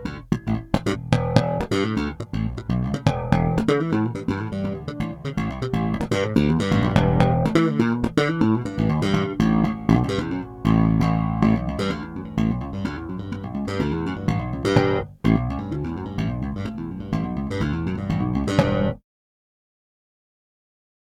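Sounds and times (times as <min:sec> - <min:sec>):
slap bass playing E: 0:00.0 - 0:19.0.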